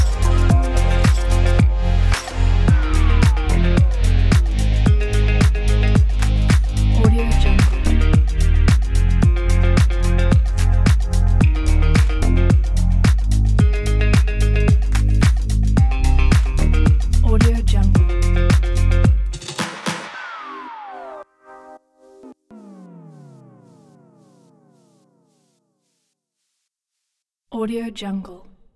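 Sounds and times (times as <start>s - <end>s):
uplifting vlog house music: 0.0s - 21.2s.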